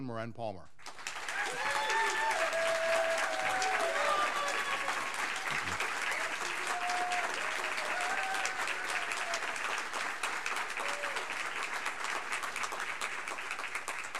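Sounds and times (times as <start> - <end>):
audience applause welcoming candidates: 0.8 - 14.1
cheers and whoops: 1.2 - 11.5.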